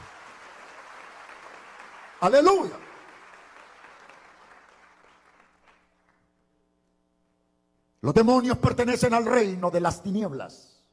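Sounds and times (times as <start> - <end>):
audience applause: 0.0 - 6.2
speech: 2.2 - 2.8, 8.0 - 10.7.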